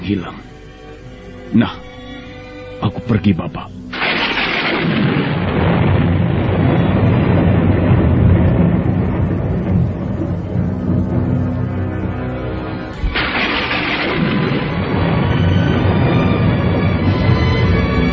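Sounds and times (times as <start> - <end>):
speech: 0.1 - 0.6, 1.5 - 1.9, 2.8 - 3.8
thunder clap: 3.9 - 18.1.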